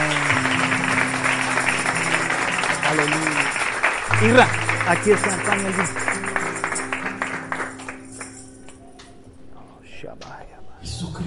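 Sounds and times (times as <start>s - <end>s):
crowd applause: 0.0s - 8.8s
speech: 4.2s - 6.2s.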